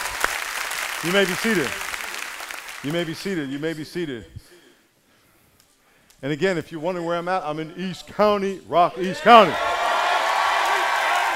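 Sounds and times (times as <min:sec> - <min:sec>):
audience applauding: 0:00.0 - 0:03.3, 0:09.7 - 0:11.3
speech: 0:01.0 - 0:01.9, 0:02.8 - 0:04.5, 0:06.2 - 0:09.7.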